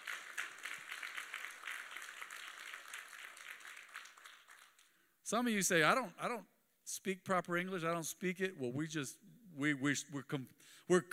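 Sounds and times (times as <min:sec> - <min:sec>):
audience clapping: 0:00.0 - 0:05.1
speech: 0:05.3 - 0:11.1.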